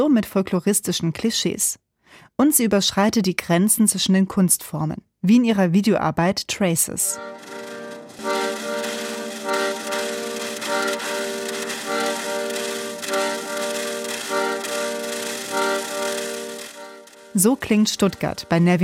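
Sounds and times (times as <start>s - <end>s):
speech: 0.0s - 7.6s, 17.4s - 18.8s
accordion played by a playground seesaw: 7.0s - 18.8s.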